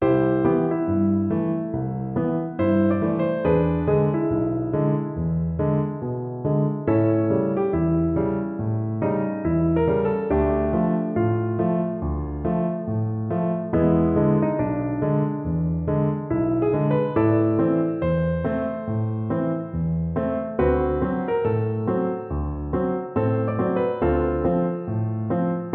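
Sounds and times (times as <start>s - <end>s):
piano: 0.0s - 25.7s.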